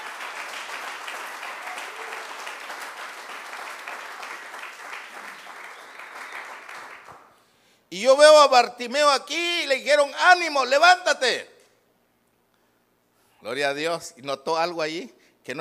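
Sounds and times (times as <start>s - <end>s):
crowd clapping hands: 0.0s - 7.4s
speech: 7.9s - 11.5s, 13.5s - 15.6s.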